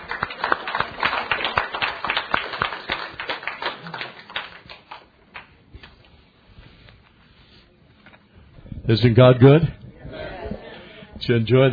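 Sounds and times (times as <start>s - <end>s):
audience clapping hands: 0.0s - 5.9s
speech: 8.9s - 9.8s, 11.3s - 11.7s.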